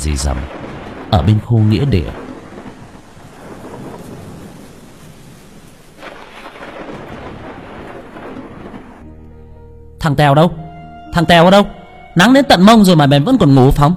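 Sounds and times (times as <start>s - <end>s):
speech: 0.0s - 2.2s, 10.1s - 13.9s
rain and wind storm: 0.0s - 9.1s.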